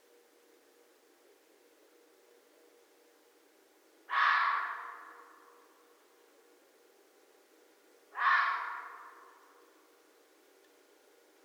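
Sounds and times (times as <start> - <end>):
red fox barking: 4.1 - 5.7, 8.1 - 9.6.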